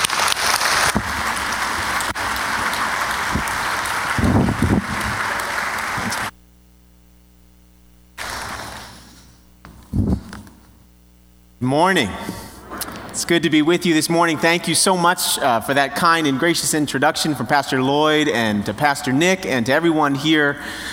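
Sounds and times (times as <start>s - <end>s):
congregation clapping at a morning church service welcoming a guest preacher: 0.0s - 6.4s
speech: 11.7s - 12.4s, 13.2s - 20.9s.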